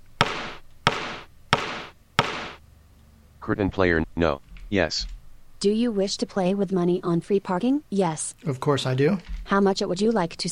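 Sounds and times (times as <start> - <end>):
basketball bouncing as a video board game token sound: 0.0 - 2.6
speech: 3.4 - 10.4.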